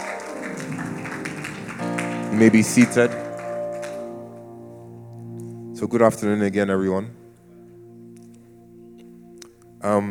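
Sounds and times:
audience applause: 0:00.0 - 0:04.3
faint sustained musical tone: 0:00.0 - 0:10.1
speech: 0:02.3 - 0:03.3, 0:05.8 - 0:07.2, 0:09.8 - 0:10.1.

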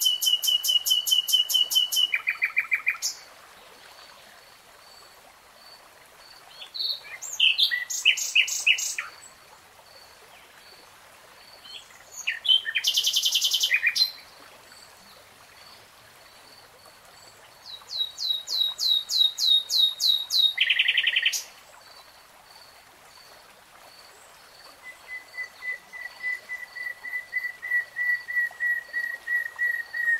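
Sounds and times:
nightingale song: 0:00.0 - 0:03.2, 0:06.5 - 0:09.3, 0:11.6 - 0:14.3, 0:17.6 - 0:21.5, 0:24.7 - 0:30.1.

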